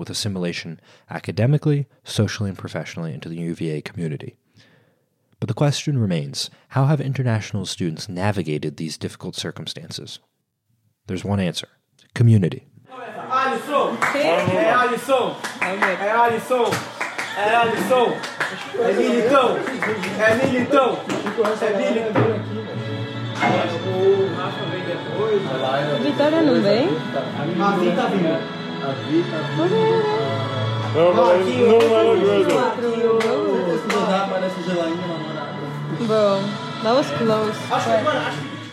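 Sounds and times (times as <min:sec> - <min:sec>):
speech: 0:00.0 - 0:04.7, 0:05.4 - 0:10.3, 0:11.1 - 0:22.3, 0:23.4 - 0:24.6, 0:25.4 - 0:30.2, 0:30.9 - 0:33.4, 0:36.0 - 0:38.5
friends' excited chatter while watching Brazil play in the World Cup: 0:12.9 - 0:38.7
scattered clapping: 0:13.9 - 0:22.0, 0:31.7 - 0:34.2.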